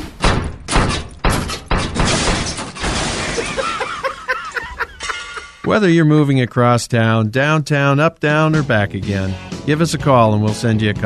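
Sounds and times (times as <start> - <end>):
refrigerator crashing down a flight of stairs: 0.0 - 4.0
laughter: 3.2 - 5.7
speech: 5.7 - 11.0.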